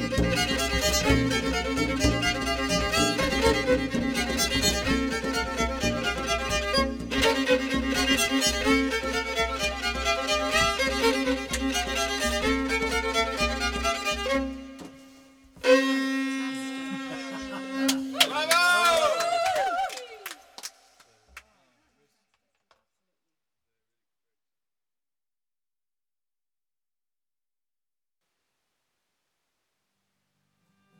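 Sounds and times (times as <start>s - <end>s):
drum: 0.0s - 12.9s
fiddle: 0.0s - 18.2s
laughter: 16.6s - 20.2s.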